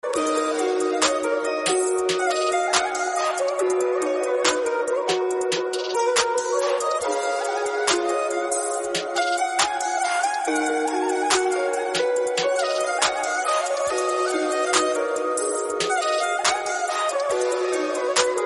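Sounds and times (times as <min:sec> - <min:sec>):
Agri Koli beats: 0:00.0 - 0:18.4.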